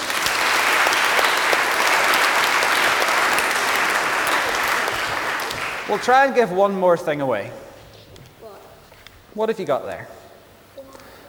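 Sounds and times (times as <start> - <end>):
audience round of applause: 0.0 - 6.4
speech: 5.9 - 7.6, 9.4 - 10.2.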